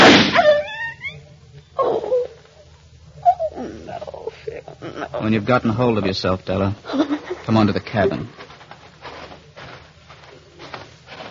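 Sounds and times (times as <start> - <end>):
pistol shot: 0.0 - 0.4
dog yelping: 0.3 - 1.2, 3.2 - 5.2
speech: 5.2 - 8.4.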